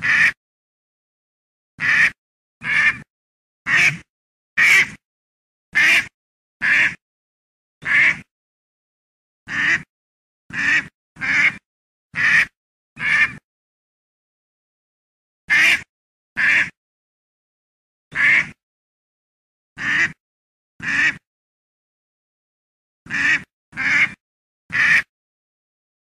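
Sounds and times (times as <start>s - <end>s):
duck giving harsh raspy quacks: 0.0s - 0.4s, 1.8s - 3.1s, 3.7s - 5.0s, 5.8s - 7.0s, 7.8s - 8.3s, 9.5s - 9.9s, 10.5s - 11.6s, 12.2s - 13.4s, 15.5s - 16.8s, 18.1s - 18.6s, 19.8s - 20.2s, 20.8s - 21.2s, 23.1s - 25.1s.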